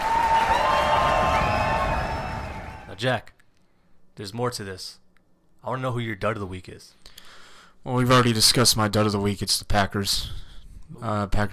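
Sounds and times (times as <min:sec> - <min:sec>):
crowd applauding: 0:00.0 - 0:03.0
speech: 0:03.0 - 0:03.4, 0:04.2 - 0:05.0, 0:05.6 - 0:11.5.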